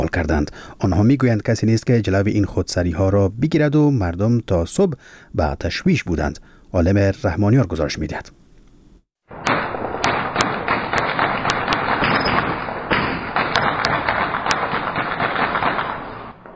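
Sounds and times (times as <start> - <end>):
speech: 0.0 - 8.4
rumbling din: 9.3 - 16.5
light and heavy weapons gunfire at night in Sheberghan, Afghanistan: 9.4 - 16.5.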